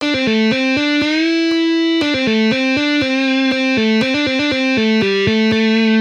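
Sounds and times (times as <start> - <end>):
guitar hammer-ons: 0.0 - 5.9.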